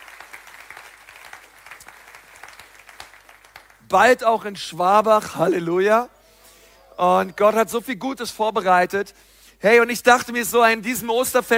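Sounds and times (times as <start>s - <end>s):
church crowd applauding: 0.0s - 4.0s
speech: 3.9s - 6.2s, 7.0s - 11.5s.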